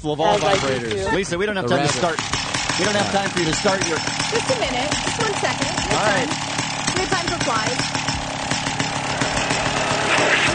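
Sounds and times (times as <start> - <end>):
speech: 0.0 - 8.1
vacuum cleaner running: 1.8 - 10.5.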